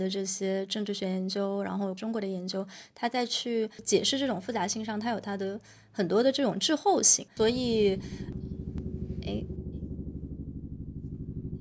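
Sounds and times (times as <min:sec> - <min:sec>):
speech: 0:00.0 - 0:08.5, 0:09.3 - 0:09.6
helicopter flying overhead with throbbing rotor and engine rumble: 0:07.4 - 0:11.6.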